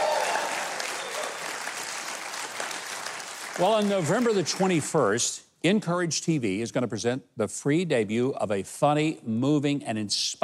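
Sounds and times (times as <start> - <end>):
audience applause for a live band: 0.0 - 4.9
speech: 3.6 - 10.4.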